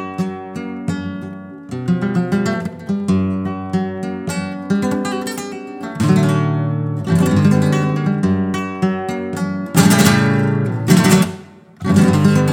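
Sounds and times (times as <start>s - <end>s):
Kremona guitar of spruce and rosewood: 0.0s - 12.5s.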